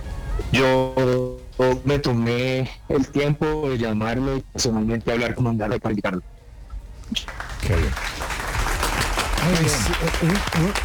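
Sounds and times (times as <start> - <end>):
speech: 0.5 - 6.4, 7.1 - 8.3, 9.4 - 10.8
audience applause: 7.2 - 10.8.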